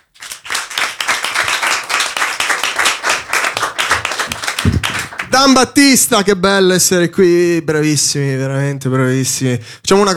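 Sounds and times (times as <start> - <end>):
loud audience applause: 0.1 - 5.6
speech: 5.4 - 10.1.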